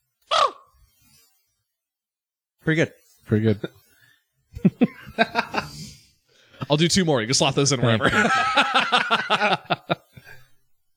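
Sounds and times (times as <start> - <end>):
person imitating raven caw: 0.3 - 0.7
speech: 2.6 - 3.8, 4.6 - 5.8, 6.7 - 10.0
laughter: 4.6 - 5.9, 7.8 - 10.2.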